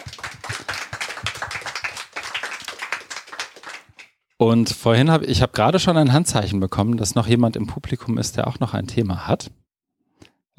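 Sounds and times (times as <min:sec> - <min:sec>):
audience applause: 0:00.0 - 0:04.2
speech: 0:04.4 - 0:09.6.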